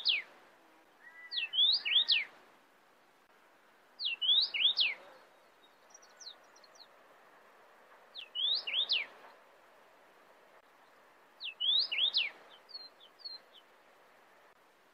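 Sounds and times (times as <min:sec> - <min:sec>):
cardinal singing sweeping whistled phrases: 0:00.0 - 0:00.2, 0:01.0 - 0:02.3, 0:04.0 - 0:05.0, 0:08.2 - 0:09.1, 0:11.4 - 0:13.4.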